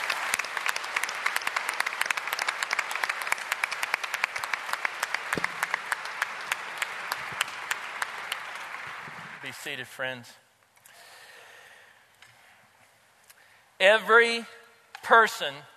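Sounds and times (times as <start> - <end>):
audience applauding: 0.0 - 9.6
speech: 9.7 - 10.4, 13.8 - 15.7.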